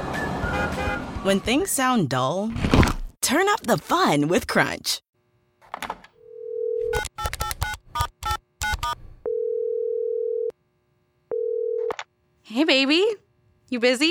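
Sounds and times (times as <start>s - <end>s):
speech: 0.7s - 5.1s, 12.5s - 14.1s
telephone dial tone: 6.2s - 10.5s, 11.3s - 12.0s
telephone keypad beeps: 6.9s - 9.0s.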